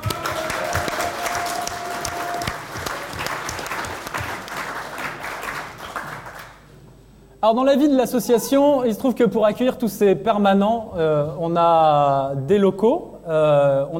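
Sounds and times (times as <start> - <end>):
audience applause: 0.0 - 6.6
speech: 7.4 - 13.9.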